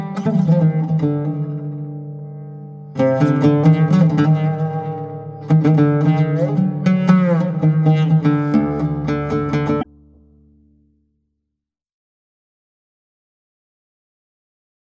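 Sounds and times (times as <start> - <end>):
Ud improvisation in Makam Hicaz, Sufi music from Turkey: 0.0 - 10.9.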